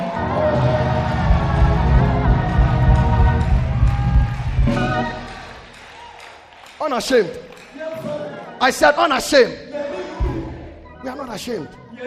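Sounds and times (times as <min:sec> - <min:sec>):
audience clapping: 0:00.0 - 0:08.8
speech: 0:06.9 - 0:07.5, 0:08.6 - 0:09.7, 0:11.4 - 0:12.0.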